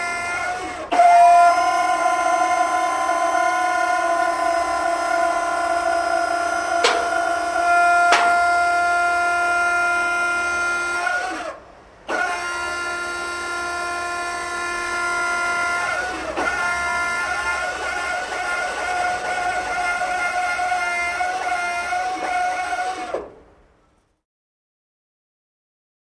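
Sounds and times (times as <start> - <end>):
hydraulic lift: 0.0 - 23.4
servos: 6.6 - 8.8.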